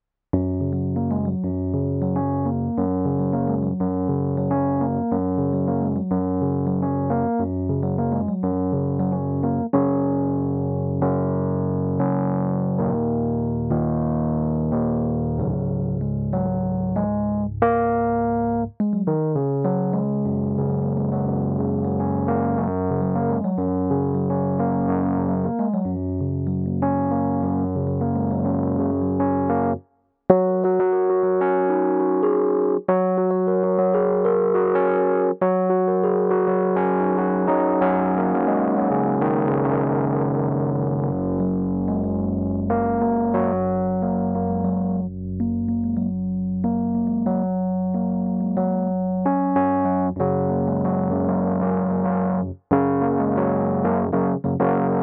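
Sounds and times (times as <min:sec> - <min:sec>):
instrumental music: 0:00.4 - 0:55.0.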